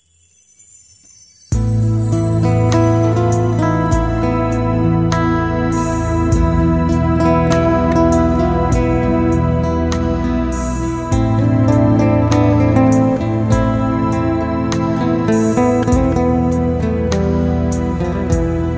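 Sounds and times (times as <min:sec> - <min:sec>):
guitar: 0:01.4 - 0:18.7.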